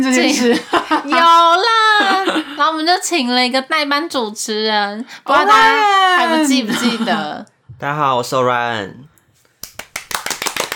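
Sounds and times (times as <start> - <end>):
speech: 0.0 - 9.1
person clapping hands: 9.6 - 10.7.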